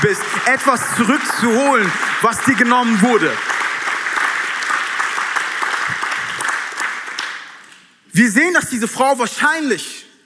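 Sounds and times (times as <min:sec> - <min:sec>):
speech: 0:00.0 - 0:03.5, 0:08.2 - 0:10.0
audience applause: 0:00.0 - 0:07.7.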